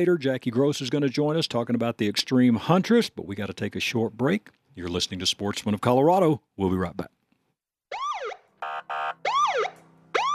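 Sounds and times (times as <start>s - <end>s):
speech: 0.0s - 7.2s
police siren wailing: 7.9s - 10.3s
honking blasts: 8.6s - 9.2s.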